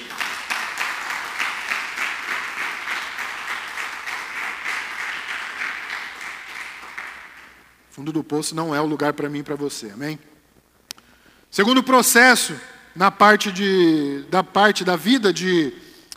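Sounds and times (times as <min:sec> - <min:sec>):
audience applause: 0:00.0 - 0:07.6
speech: 0:08.0 - 0:10.3, 0:11.6 - 0:15.8.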